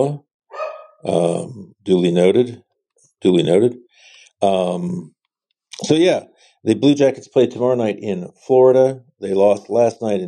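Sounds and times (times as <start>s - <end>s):
speech: 0.0s - 0.3s, 1.0s - 2.6s, 3.2s - 3.8s, 4.4s - 5.2s, 5.8s - 10.2s
dog barking and growling: 0.5s - 1.2s.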